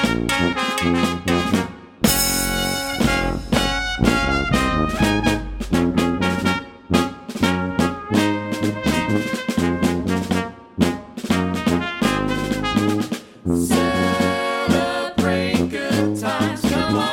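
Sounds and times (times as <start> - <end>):
brass band playing: 0.0 - 17.1.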